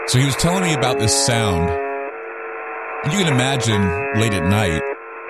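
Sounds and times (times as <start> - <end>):
speech: 0.1 - 1.8, 3.0 - 4.8
harsh pulsing radio buzzer: 3.1 - 4.9.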